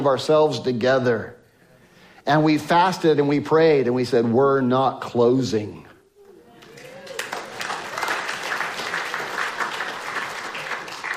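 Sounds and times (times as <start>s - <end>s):
speech: 0.0s - 1.4s, 2.2s - 5.9s
audience applause: 6.5s - 11.1s.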